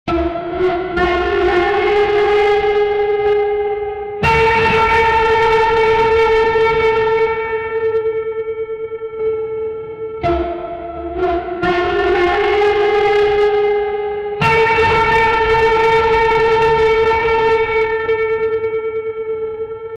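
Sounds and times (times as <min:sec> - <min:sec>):
horror cliffhanger music: 0:00.1 - 0:19.9.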